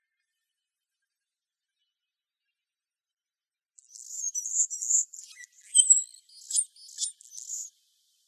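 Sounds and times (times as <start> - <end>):
Anna's hummingbird buzzy song in Arizona: 5.4 - 7.7.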